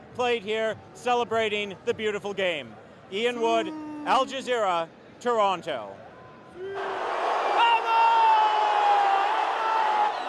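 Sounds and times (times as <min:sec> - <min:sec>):
speech: 0:00.2 - 0:06.0
fans cheering arriving team: 0:06.6 - 0:10.2.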